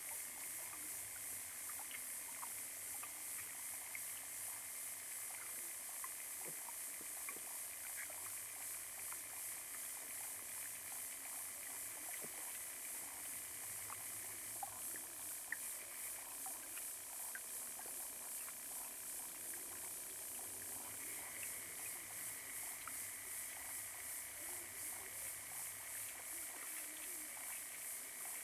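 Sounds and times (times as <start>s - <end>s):
hydrophone recording of a small pond in Parc Jean-Jacques Rousseau: 0.1s - 28.4s.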